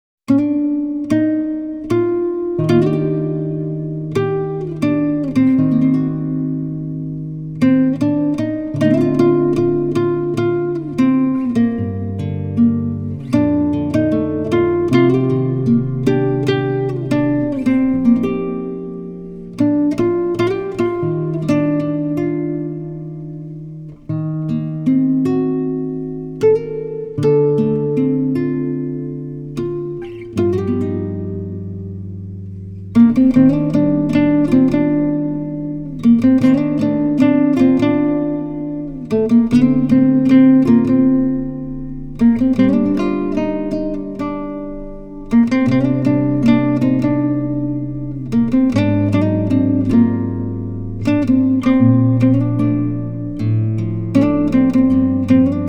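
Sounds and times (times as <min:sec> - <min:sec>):
guitar: 0:00.0 - 0:55.6.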